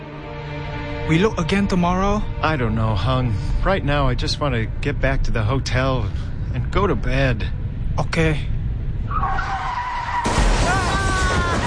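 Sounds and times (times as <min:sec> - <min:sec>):
speech: 0:01.1 - 0:08.6
tire screech from a skidding motorcycle: 0:09.0 - 0:11.6
motorcycle crashing into a car: 0:10.1 - 0:11.6.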